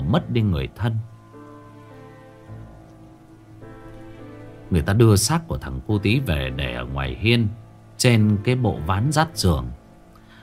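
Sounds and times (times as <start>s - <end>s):
heavy rain: 0.0s - 8.0s
speech: 0.1s - 1.1s, 4.7s - 9.8s.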